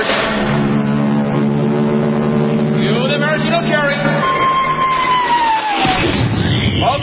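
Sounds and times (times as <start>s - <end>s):
sustained horn-like tones: 0.2s - 6.8s
huge crowd of extras cheering: 3.7s - 6.4s
rising, falling whistle: 4.1s - 6.8s.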